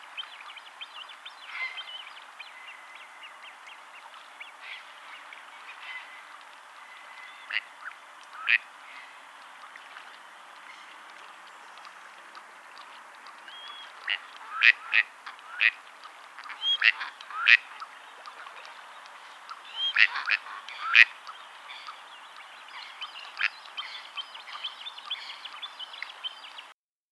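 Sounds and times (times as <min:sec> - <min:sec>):
gadwall Mareca strepera calling: 0:08.4 - 0:08.6, 0:13.6 - 0:15.8, 0:16.4 - 0:17.8, 0:19.8 - 0:21.1.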